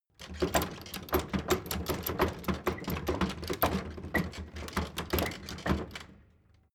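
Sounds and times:
loft door flap rattling: 0.2 - 6.2.

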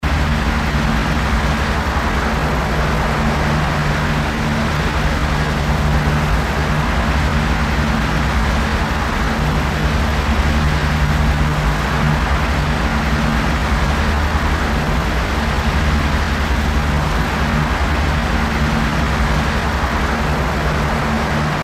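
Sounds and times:
aggressive rotor noise: 0.0 - 21.6.

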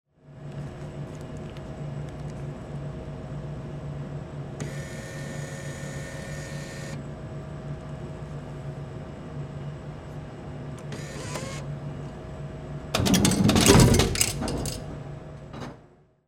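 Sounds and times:
soft drink vending machine: 4.6 - 7.0, 10.7 - 11.8, 12.8 - 15.9.

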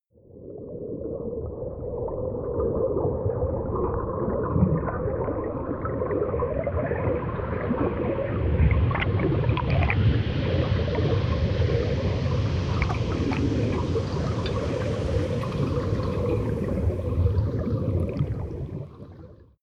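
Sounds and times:
water sound effects: 0.3 - 19.6.

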